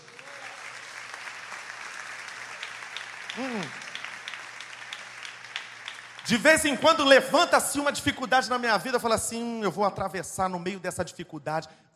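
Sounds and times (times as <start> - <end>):
audience applause: 0.0 - 7.2
speech: 3.4 - 3.8, 6.3 - 11.9.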